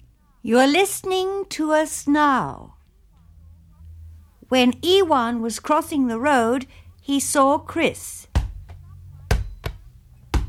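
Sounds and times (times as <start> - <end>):
speech: 0.4 - 2.8, 4.5 - 8.3
ball bouncing: 8.3 - 10.4.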